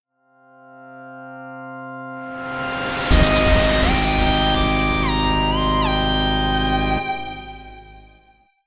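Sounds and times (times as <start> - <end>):
appearance fanfare: 2.3 - 8.3.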